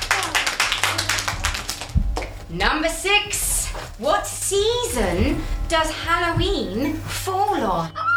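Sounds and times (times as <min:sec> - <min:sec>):
small group clapping in a round of applause: 0:00.0 - 0:02.4
speech: 0:02.5 - 0:08.0.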